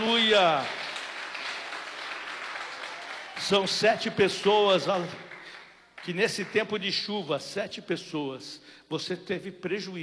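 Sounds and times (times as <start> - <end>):
church congregation clapping: 0.0 - 7.1
speech: 0.3 - 0.8, 3.4 - 5.2, 6.0 - 10.0.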